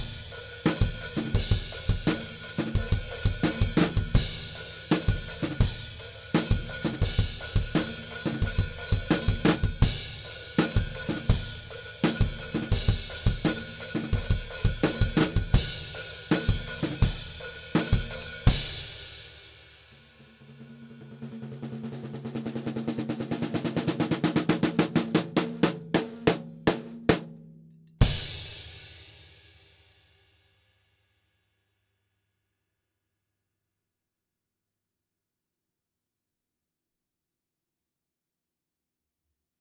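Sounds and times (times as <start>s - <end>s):
drums: 0.0s - 30.4s.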